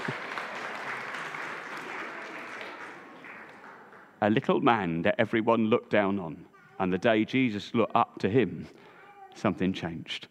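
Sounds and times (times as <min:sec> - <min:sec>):
audience clapping: 0:00.0 - 0:04.4
speech: 0:04.2 - 0:10.2.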